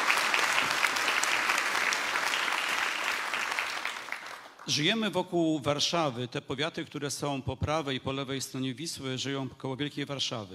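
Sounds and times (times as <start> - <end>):
audience applause: 0.0 - 4.6
speech: 4.7 - 10.5.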